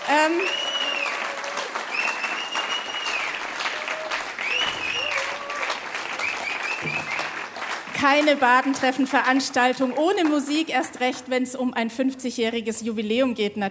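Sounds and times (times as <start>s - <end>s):
crowd applause: 0.0s - 11.2s
whistles and cheers: 0.1s - 7.4s
speech: 8.0s - 13.6s.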